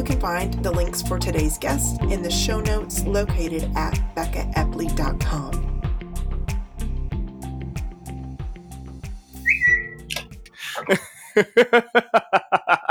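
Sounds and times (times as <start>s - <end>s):
speech: 0.0s - 5.7s, 10.9s - 12.9s
thumping music beat: 0.0s - 11.0s
phone text message alert chirp: 9.5s - 10.2s
bursts of laughter: 10.6s - 12.9s.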